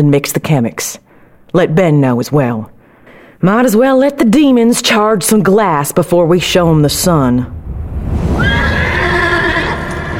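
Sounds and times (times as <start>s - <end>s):
speech: 0.0s - 2.7s, 3.4s - 7.6s
low rumble of movement: 6.3s - 10.1s
horse whinnying: 8.4s - 10.1s.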